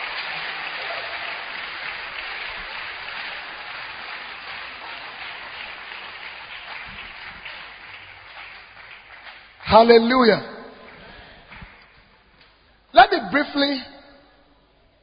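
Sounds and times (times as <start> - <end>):
audience clapping hands: 0.0 - 12.6
speech: 9.7 - 10.5, 13.3 - 13.9.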